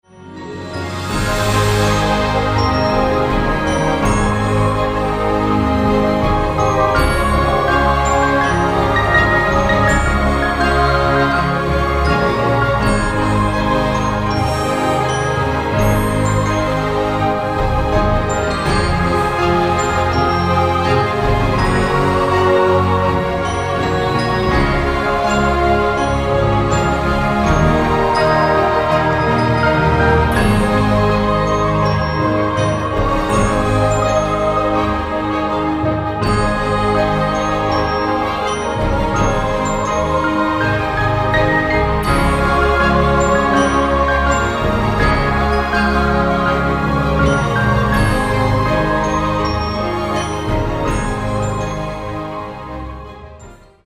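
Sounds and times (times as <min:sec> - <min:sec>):
angelic melody: 0:00.0 - 0:53.8.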